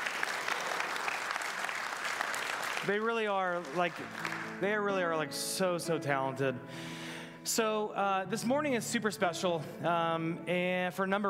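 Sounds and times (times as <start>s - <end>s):
audience applauding the band: 0.0s - 5.1s
speech: 2.8s - 11.2s.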